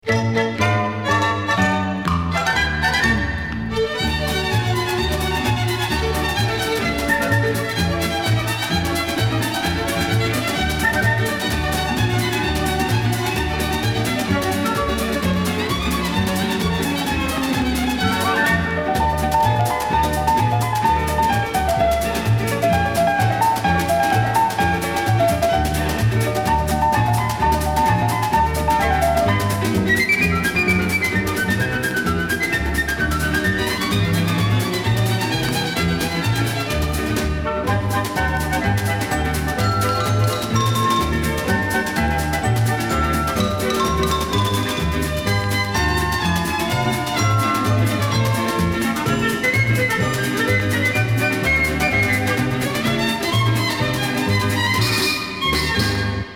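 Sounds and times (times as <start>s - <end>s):
samba music: 0.0s - 56.3s.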